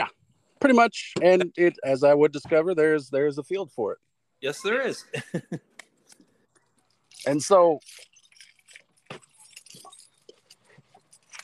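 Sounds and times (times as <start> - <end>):
speech: 0.6 - 5.7, 7.2 - 8.1
laughter: 4.5 - 5.6
car keys jangling inside a truck: 6.1 - 11.4.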